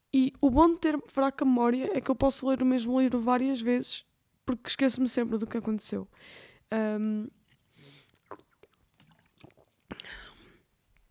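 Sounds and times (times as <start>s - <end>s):
speech: 0.1s - 8.0s
person drinking water: 7.4s - 11.0s.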